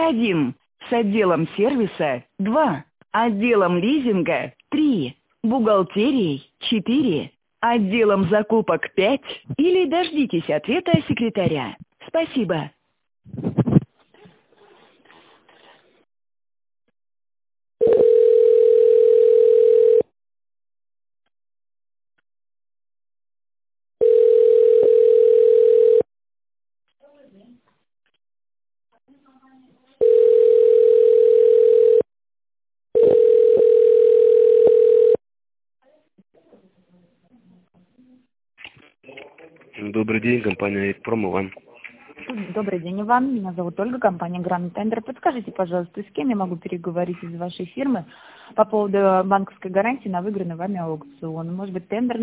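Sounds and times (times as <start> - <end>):
speech: 0.0 - 13.5, 39.0 - 41.7, 42.3 - 52.2
telephone ringback tone: 17.8 - 20.1, 24.0 - 26.1, 30.0 - 32.1, 33.0 - 35.2.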